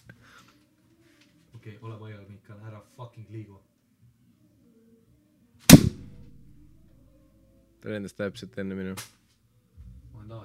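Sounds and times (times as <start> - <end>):
speech: 1.6 - 3.8, 7.8 - 9.2, 10.3 - 10.4
hand slap swatting a fly: 5.7 - 6.4.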